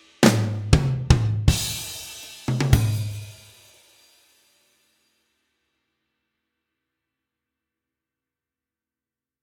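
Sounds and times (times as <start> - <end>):
drums: 0.0 - 5.2.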